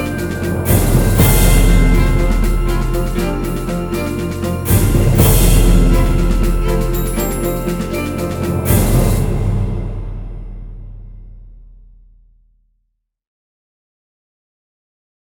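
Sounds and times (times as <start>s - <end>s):
victory jingle: 0.0s - 11.0s.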